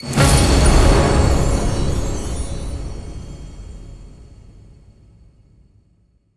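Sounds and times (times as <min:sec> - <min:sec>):
big win ending jingle: 0:00.0 - 0:04.3.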